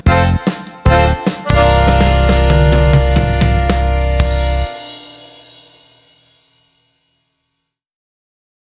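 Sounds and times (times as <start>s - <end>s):
jingle: 0.1s - 5.8s.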